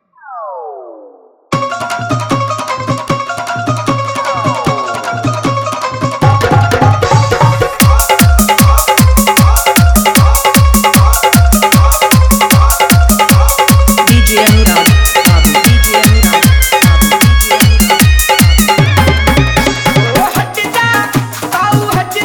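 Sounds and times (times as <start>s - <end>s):
Krishna bhajan dance mix with dholak and bass: 1.5s - 22.2s.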